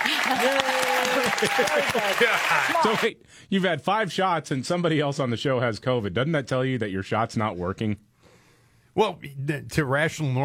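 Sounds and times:
studio audience clapping: 0.0 - 3.1
speech: 0.3 - 0.8, 1.4 - 8.1, 9.0 - 10.4.

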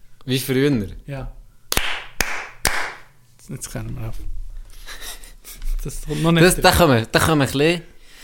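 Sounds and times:
speech: 0.2 - 1.4, 3.5 - 4.4, 5.8 - 7.9
hand clapping: 1.7 - 3.1.

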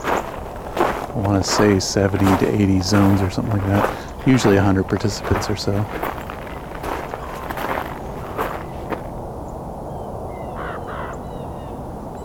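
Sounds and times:
raven croaking: 0.0 - 12.2
speech: 1.2 - 6.2.

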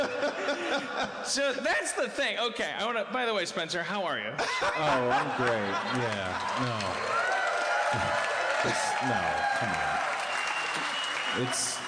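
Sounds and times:
laughter: 0.0 - 1.7, 4.4 - 7.1
speech: 0.7 - 7.3, 7.9 - 10.1, 11.4 - 11.8
audience applause: 5.0 - 11.8.

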